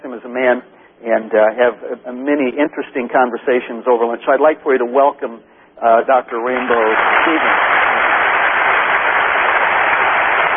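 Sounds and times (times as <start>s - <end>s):
speech: 0.3s - 7.8s
audience clapping for a speaker: 6.6s - 10.5s.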